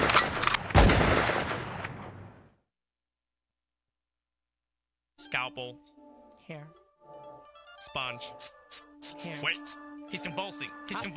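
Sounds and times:
gunshots: 0.0 - 2.4
heavy blast: 0.0 - 2.4
speech: 5.2 - 5.9, 6.5 - 6.8, 7.8 - 11.1.

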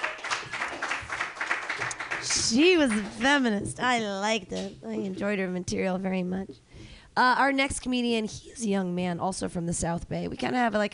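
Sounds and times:
audience clapping: 0.0 - 3.6
speech: 2.2 - 10.9.

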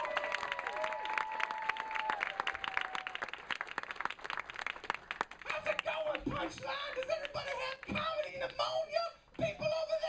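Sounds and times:
audience clapping: 0.0 - 8.8
speech: 6.2 - 9.9.

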